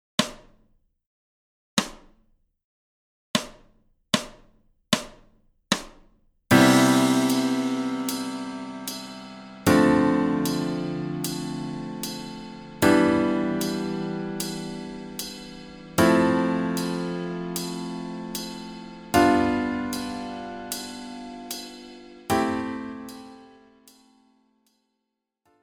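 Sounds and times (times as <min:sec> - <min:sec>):
major scale degrees played: 0:06.5 - 0:23.4.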